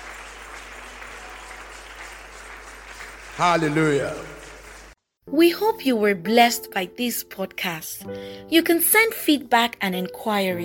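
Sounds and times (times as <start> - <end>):
audience clapping: 0.0 - 5.0
speech: 3.4 - 4.3, 5.3 - 10.6.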